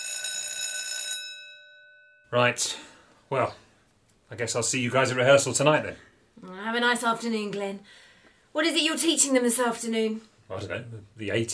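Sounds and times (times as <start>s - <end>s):
school bell ringing: 0.0s - 2.4s
speech: 2.3s - 3.6s, 4.3s - 11.5s.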